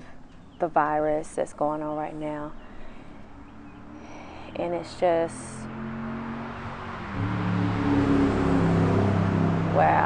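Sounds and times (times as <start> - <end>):
speech: 0.6 - 2.6, 4.6 - 5.6, 7.2 - 7.4, 9.8 - 10.0
Corvette engine racing down a country road: 2.6 - 10.0.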